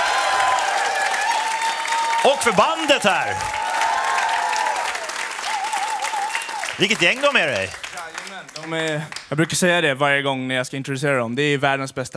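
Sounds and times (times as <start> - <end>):
audience applause: 0.0 - 9.6
speech: 2.2 - 3.6, 6.8 - 7.8, 8.7 - 12.1.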